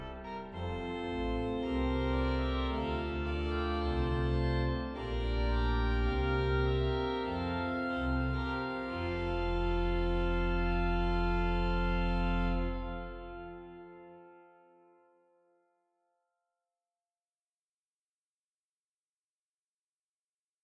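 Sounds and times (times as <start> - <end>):
main pipe organ trumpet stop in Rotterdam: 0.0 - 14.3.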